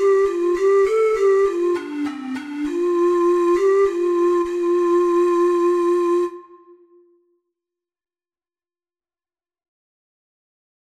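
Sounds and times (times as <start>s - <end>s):
four-hole ocarina melody: 0.0s - 7.3s.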